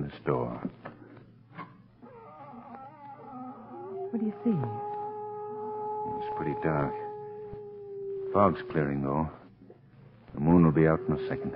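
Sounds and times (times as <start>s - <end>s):
speech: 0.2s - 0.8s, 4.1s - 4.9s, 6.4s - 7.0s, 8.4s - 9.4s, 10.5s - 11.5s
cat howling: 2.0s - 9.4s, 10.4s - 11.5s.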